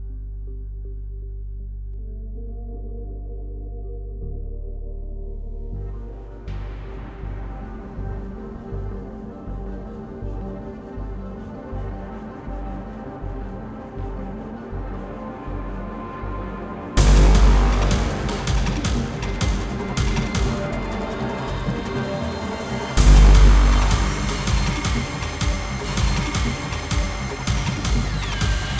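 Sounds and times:
fight music at 160 BPM: 0:06.3 - 0:28.7.

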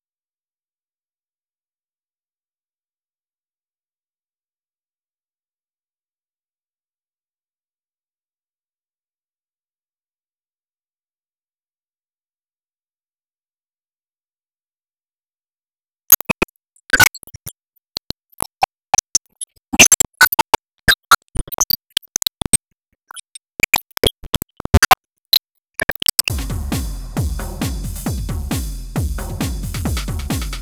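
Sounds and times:
music loop: 0:16.1 - 0:30.5.

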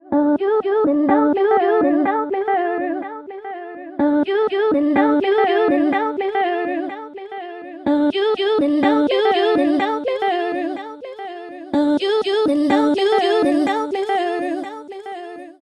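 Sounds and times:
vocals: 0:00.0 - 0:15.7.

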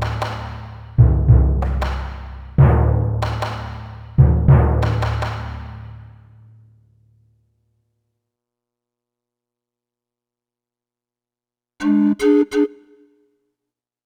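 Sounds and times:
forest music at 150 bpm: 0:00.0 - 0:07.0, 0:11.8 - 0:13.3.

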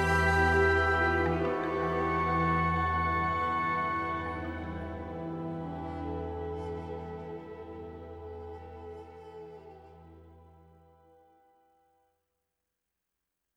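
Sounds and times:
town music: 0:00.0 - 0:10.7.

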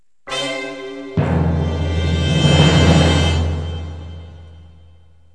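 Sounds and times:
success sound: 0:00.3 - 0:04.6.

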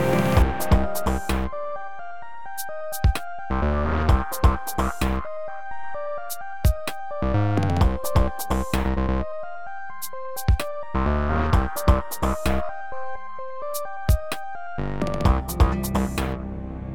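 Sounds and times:
forest ambience loop: 0:00.1 - 0:01.5, 0:02.6 - 0:05.3, 0:06.3 - 0:09.2, 0:10.0 - 0:12.7, 0:15.1 - 0:16.4.

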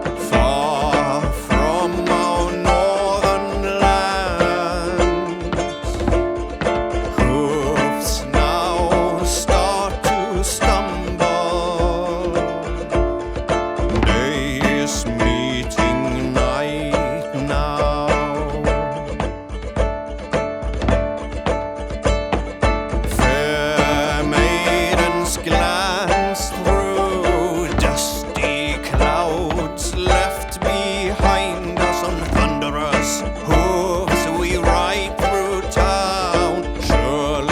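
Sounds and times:
person singing: 0:00.0 - 0:19.6, 0:23.1 - 0:37.5
drum: 0:00.0 - 0:37.5
guitar: 0:00.0 - 0:37.5.

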